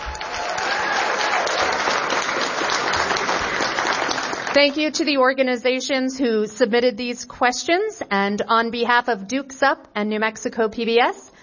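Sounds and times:
audience applause: 0.0s - 4.7s
speech: 4.6s - 11.3s.

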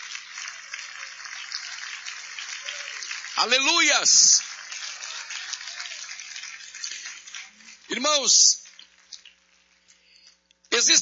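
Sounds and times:
audience applauding: 0.0s - 9.9s
speech: 3.4s - 4.5s, 8.0s - 8.6s, 10.8s - 11.0s.

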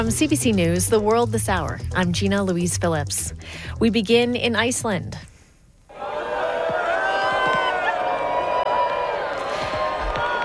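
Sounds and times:
speech: 0.0s - 5.3s
crowd cheering at a solar eclipse: 5.9s - 10.4s.

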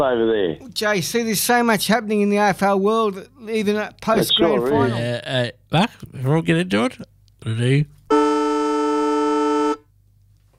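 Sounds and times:
speech: 0.0s - 8.2s
old siren at Traeger Park: 8.1s - 9.8s.

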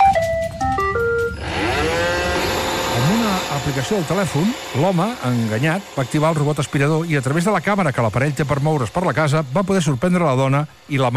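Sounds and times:
rumba music played as a joke: 0.0s - 5.6s
speech: 3.7s - 11.1s.

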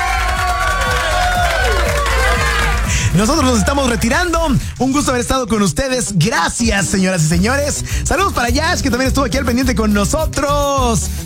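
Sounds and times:
applause and cheering: 0.0s - 5.3s
speech: 3.2s - 11.2s.

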